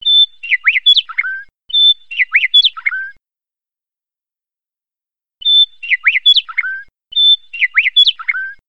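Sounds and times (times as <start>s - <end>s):
bird: 0.0s - 3.2s, 5.4s - 8.6s.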